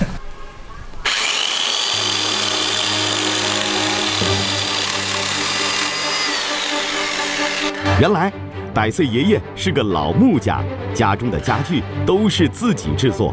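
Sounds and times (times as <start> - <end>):
electric saw running: 1.0 - 8.0
speech: 8.0 - 13.3.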